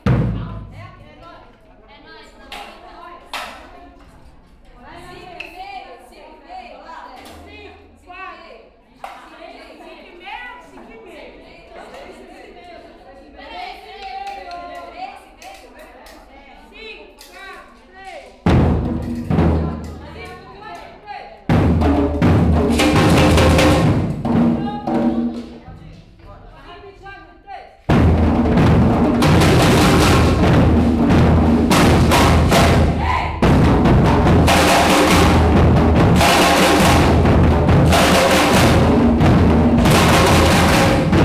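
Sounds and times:
batucada samba percussion rehearsal in Brazil: 0.0 - 1.6, 18.3 - 27.0, 27.9 - 41.2.

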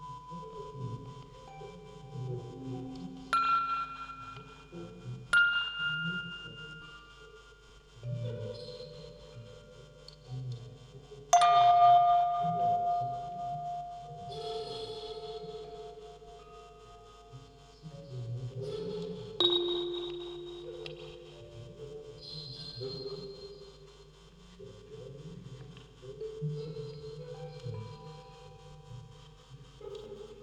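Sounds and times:
vocoder voice: 0.0 - 7.4, 8.0 - 23.6, 24.4 - 30.4
field recording ambience: 0.0 - 30.4
music box quartet: 0.1 - 7.4, 11.4 - 16.6, 18.9 - 22.2.

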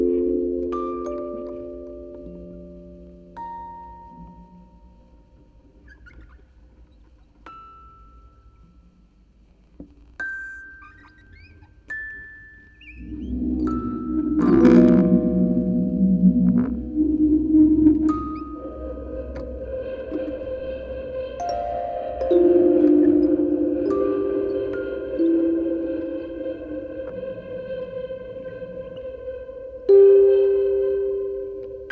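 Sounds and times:
quartet of music boxes playing: 0.0 - 5.0, 11.9 - 31.9.

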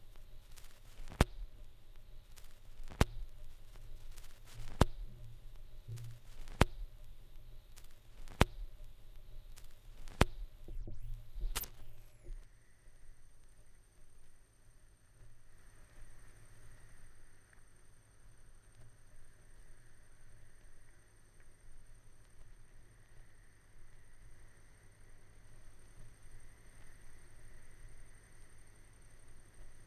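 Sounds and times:
vinyl record noise: 0.0 - 12.4.

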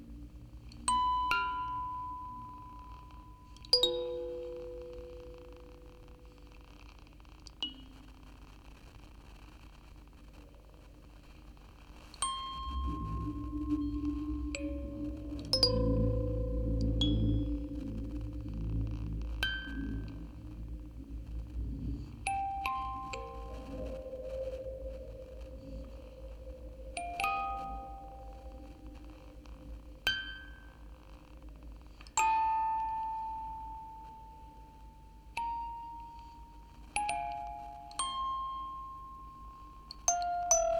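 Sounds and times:
quartet of music boxes playing: 0.9 - 5.6, 12.2 - 30.8, 32.2 - 40.7.

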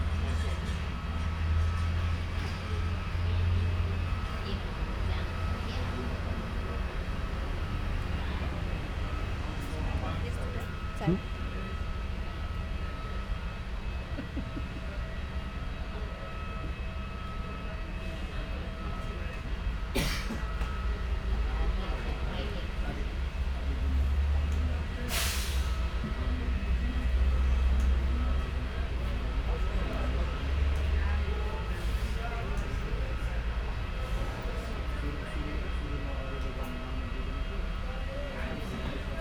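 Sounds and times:
bus interior ambience at an airport: 0.0 - 39.2
laughter: 13.9 - 15.4.

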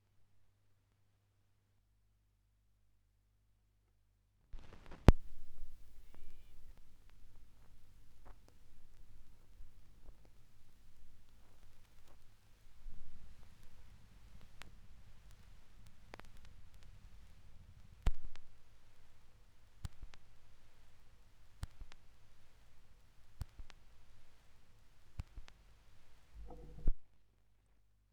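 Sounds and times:
vinyl record noise from a vinyl rip: 4.6 - 27.0.

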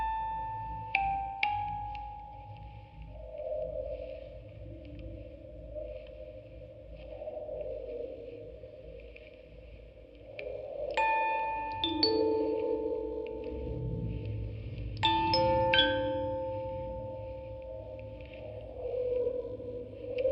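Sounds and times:
field recording ambience: 0.0 - 20.3
quartet of music boxes playing: 11.0 - 14.4, 15.0 - 18.1.

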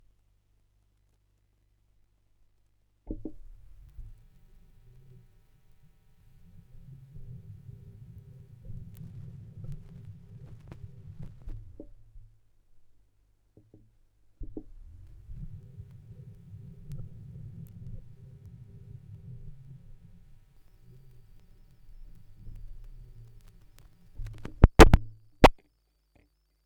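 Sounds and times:
vinyl record noise: 3.3 - 11.9, 14.7 - 25.6.

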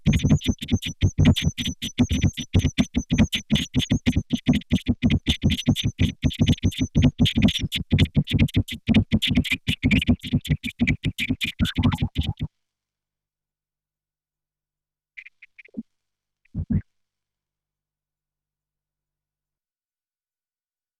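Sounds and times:
Roland 707 vocoder beats: 0.0 - 12.5.

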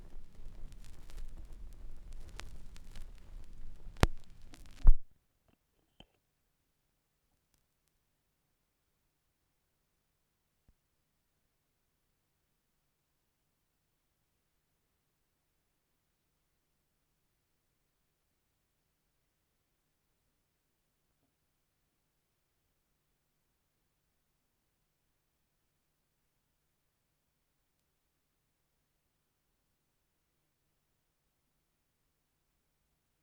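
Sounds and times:
vinyl record noise: 0.0 - 5.1.

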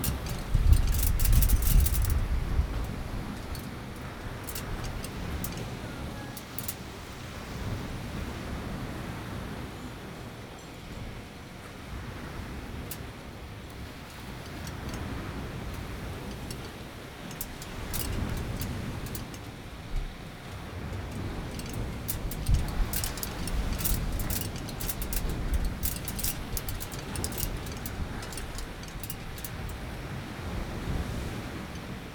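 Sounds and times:
wind in Curacao: 0.0 - 32.1.

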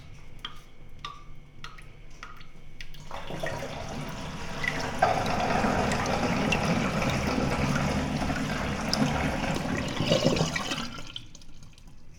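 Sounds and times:
water tap running in a cafe in Lisbon: 3.0 - 12.1.

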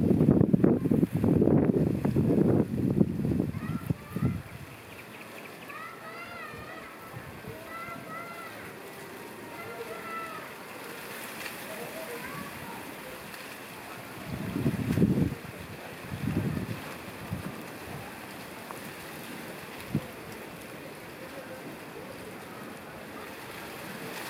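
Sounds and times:
wind on the water at sunset in Curacao: 0.0 - 24.2.

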